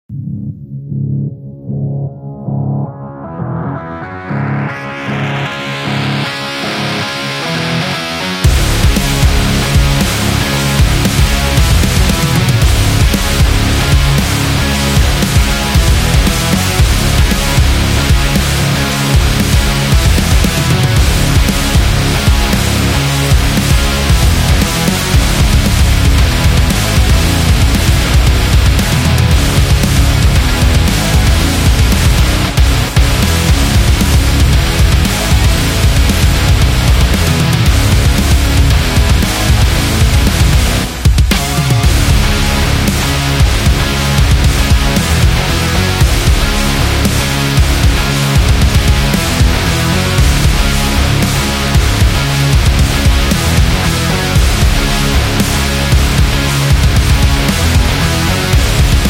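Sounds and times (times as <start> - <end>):
metal music: 0.1 - 59.0.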